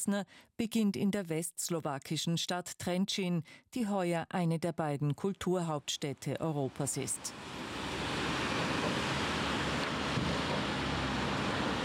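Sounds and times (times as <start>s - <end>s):
speech: 0.0s - 7.6s
wind blowing on a river bridge: 7.2s - 11.8s.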